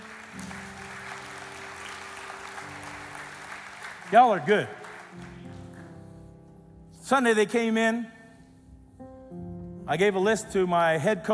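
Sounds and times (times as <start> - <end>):
audience applause: 0.0 - 6.2
speech: 4.1 - 5.3, 7.1 - 8.2, 9.9 - 11.3.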